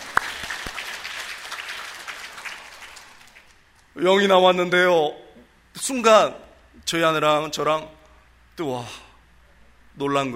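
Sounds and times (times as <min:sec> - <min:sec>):
audience applause: 0:00.0 - 0:03.6
speech: 0:04.0 - 0:05.2, 0:05.8 - 0:08.0, 0:08.6 - 0:09.0, 0:10.0 - 0:10.3.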